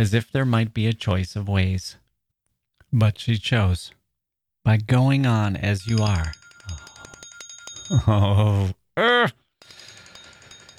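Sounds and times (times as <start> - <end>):
speech: 0.0 - 2.0, 2.9 - 4.0, 4.6 - 6.8, 7.9 - 9.4
timer bell ringing: 5.7 - 8.3, 9.6 - 10.7.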